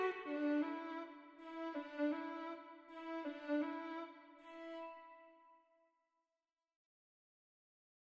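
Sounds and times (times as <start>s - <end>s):
violin: 0.0s - 5.6s.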